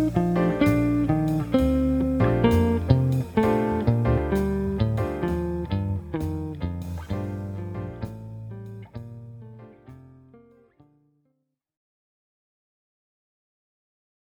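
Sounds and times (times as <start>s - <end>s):
major 7 chord exercise: 0.0s - 10.2s.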